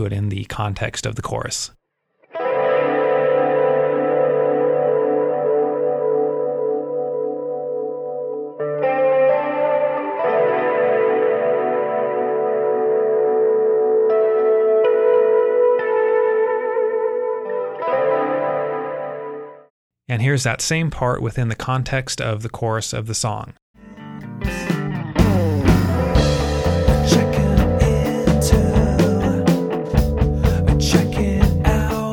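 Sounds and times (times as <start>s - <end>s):
speech: 0.0s - 1.8s, 20.1s - 23.6s
electric guitar with echo, chorus and distortion effects playing chords: 2.3s - 19.7s, 23.8s - 32.1s.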